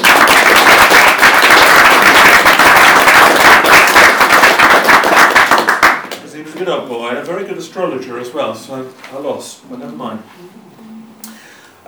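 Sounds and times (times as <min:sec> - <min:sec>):
round of applause: 0:00.0 - 0:06.2
speech: 0:06.6 - 0:10.9.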